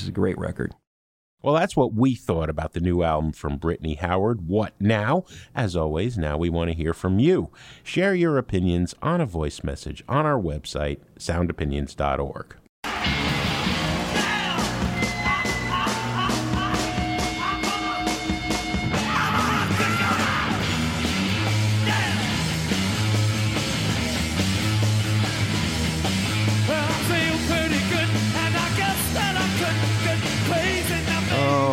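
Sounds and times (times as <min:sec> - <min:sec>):
speech: 0:00.0 - 0:00.8, 0:01.4 - 0:12.6
edited rock song intro with twin electric guitars and pounding drums: 0:12.8 - 0:31.7
shouting voices: 0:14.1 - 0:18.2, 0:19.0 - 0:20.7, 0:21.7 - 0:22.5, 0:30.6 - 0:31.7.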